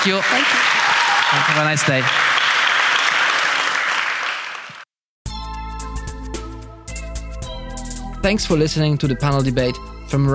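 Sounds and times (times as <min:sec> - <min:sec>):
speech: 0:00.0 - 0:02.3, 0:08.2 - 0:10.3
crowd applauding: 0:00.0 - 0:04.9.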